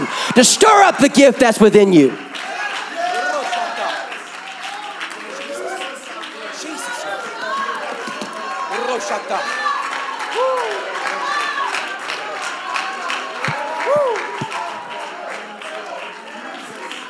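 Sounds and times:
audience clapping: 0.0s - 17.0s
speech: 0.4s - 2.3s.

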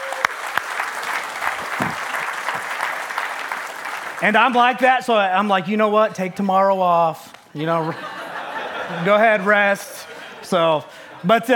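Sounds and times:
audience applauding: 0.0s - 5.4s
speech: 4.2s - 8.1s, 8.9s - 11.5s
laughter: 7.6s - 11.5s.

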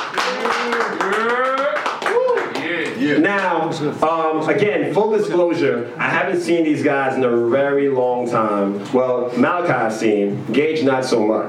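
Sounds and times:
audience applause welcoming guests onto a stage at a live event: 0.0s - 3.0s
speech: 3.1s - 11.4s.

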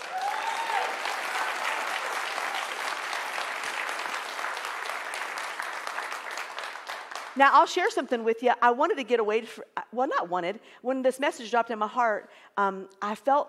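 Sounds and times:
audience clapping loudly: 0.0s - 7.4s
speech: 7.4s - 13.4s.

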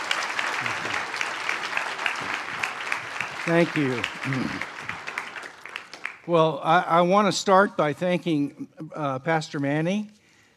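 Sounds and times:
audience applause at Calvary Monterey welcoming a speaker: 0.0s - 6.3s
speech: 3.4s - 4.7s, 6.3s - 10.2s.

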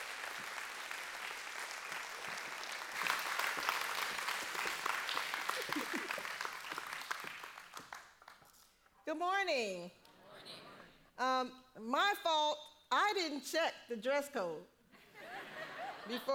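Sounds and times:
church congregation applauding a guest speaker: 0.0s - 8.7s
laughter: 5.4s - 6.5s, 15.0s - 16.3s
speech: 9.1s - 10.0s, 11.2s - 14.7s, 16.1s - 16.3s.

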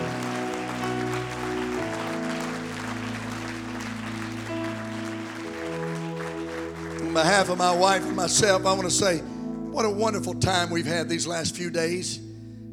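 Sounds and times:
audience applause: 0.0s - 9.2s
speech: 7.2s - 12.2s.

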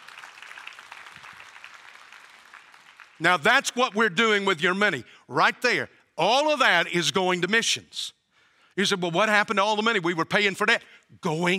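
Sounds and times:
audience applause: 0.0s - 3.4s
speech: 3.2s - 8.2s, 8.8s - 11.5s.

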